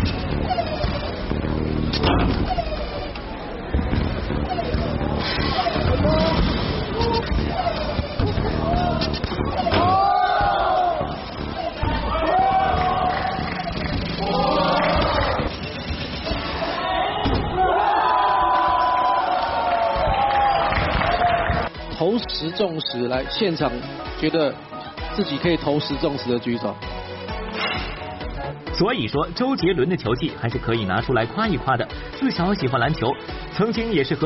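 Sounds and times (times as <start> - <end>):
crowd noise: 0.0 - 30.5
contestants screaming and cheering: 2.5 - 21.8
speech: 22.6 - 27.0, 28.8 - 34.2.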